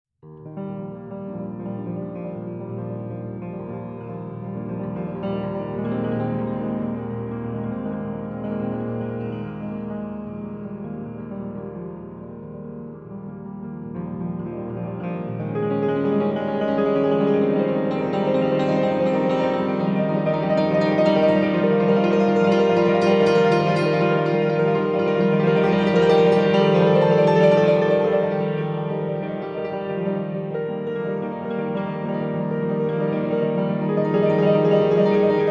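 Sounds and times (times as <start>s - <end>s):
solo piano: 0.2s - 35.5s.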